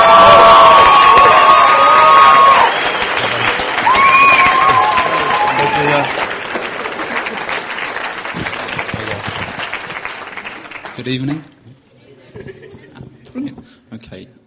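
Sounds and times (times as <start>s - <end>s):
audience applause and cheering: 0.0s - 11.5s
speech: 11.1s - 11.5s.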